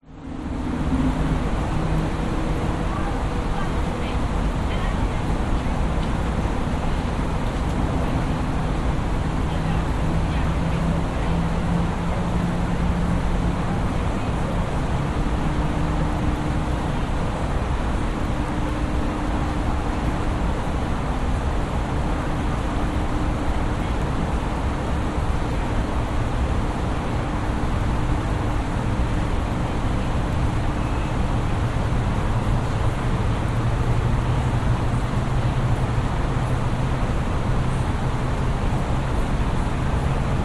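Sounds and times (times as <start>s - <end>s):
distant city traffic hum by a riverside at night: 0.0s - 40.4s
faint voice close by: 2.7s - 5.8s.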